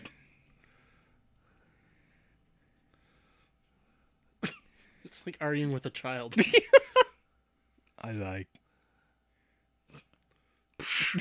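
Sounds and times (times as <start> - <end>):
man coughing: 4.4 - 4.7
speech: 5.1 - 6.8, 8.0 - 8.6.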